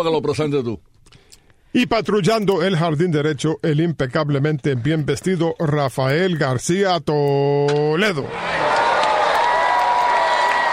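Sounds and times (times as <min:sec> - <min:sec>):
speech: 0:00.0 - 0:00.9, 0:01.7 - 0:08.7
audience ovation with applause and cheering: 0:08.2 - 0:10.7.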